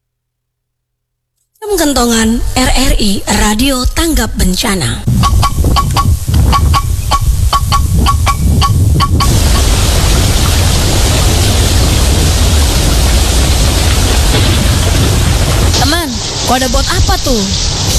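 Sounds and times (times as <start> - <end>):
speech: 1.6 - 5.4, 16.5 - 17.9
heavy rain pouring: 5.1 - 17.9.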